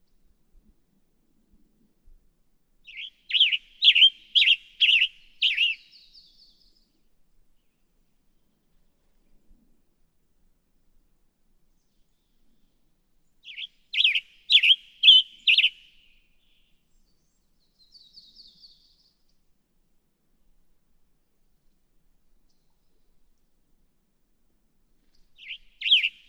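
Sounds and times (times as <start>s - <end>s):
Western Tanager: 2.9s - 6.0s, 13.5s - 15.9s, 25.4s - 26.2s.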